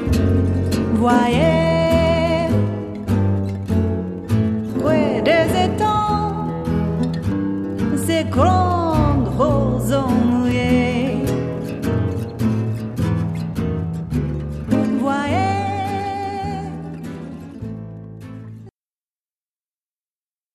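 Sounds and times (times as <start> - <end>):
person singing: 0.0 - 3.1, 4.7 - 7.2, 7.8 - 11.8, 14.7 - 17.4
guitar: 0.0 - 18.8.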